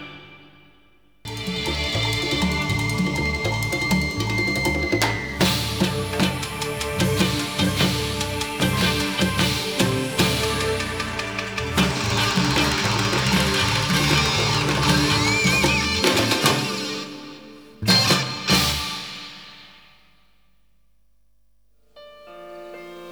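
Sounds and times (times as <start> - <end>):
drum and bass music: 1.3 - 19.5.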